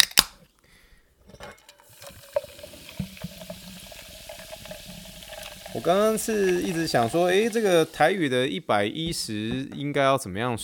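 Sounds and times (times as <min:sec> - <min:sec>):
sparkling water fizzing: 0:01.8 - 0:08.3
speech: 0:05.8 - 0:10.6.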